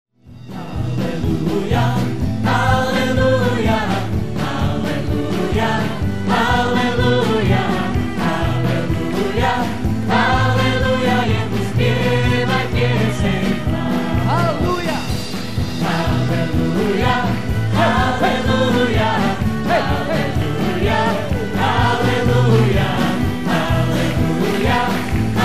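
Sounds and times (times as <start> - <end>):
choral hymn singing: 0.5 - 14.4, 15.2 - 25.4.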